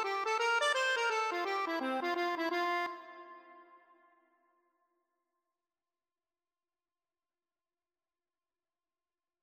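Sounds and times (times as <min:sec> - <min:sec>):
accordion: 0:00.0 - 0:03.8.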